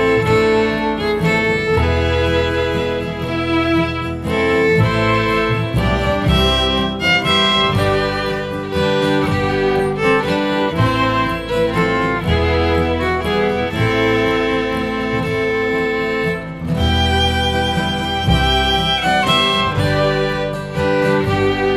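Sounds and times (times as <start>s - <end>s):
bass: 0.0s - 21.7s.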